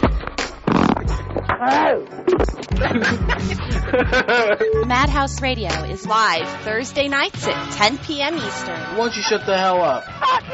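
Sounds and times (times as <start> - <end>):
loud sputtering fart noises: 0.3 - 2.8
speech: 1.6 - 10.5
laughter: 2.7 - 4.8, 9.4 - 10.5.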